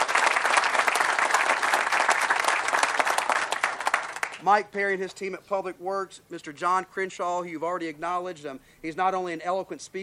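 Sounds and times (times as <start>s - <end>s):
audience applause: 0.0s - 4.4s
speech: 4.4s - 10.0s.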